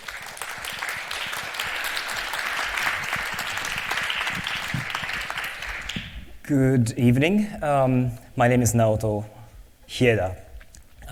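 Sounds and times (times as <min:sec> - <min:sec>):
audience applause: 0:00.0 - 0:06.3
speech: 0:06.5 - 0:10.4.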